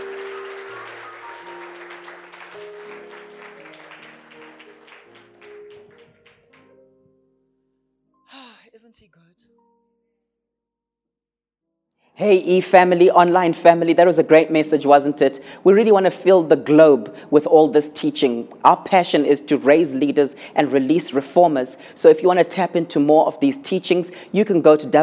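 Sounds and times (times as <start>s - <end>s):
audience applause: 0.0s - 6.6s
sustained low keyboard chords: 0.0s - 7.4s
speech: 8.9s - 9.9s, 12.2s - 25.0s.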